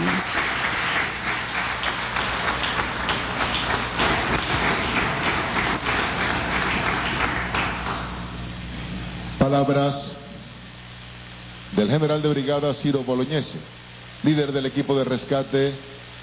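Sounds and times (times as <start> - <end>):
crowd applauding rescue team: 0.0 - 8.4
speech: 9.5 - 10.2, 11.8 - 15.9.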